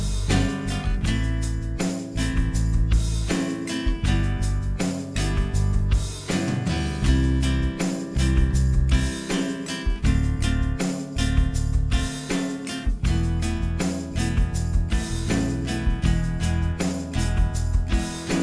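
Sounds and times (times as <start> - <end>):
guitar study piece at 80bpm: 0.0 - 18.4.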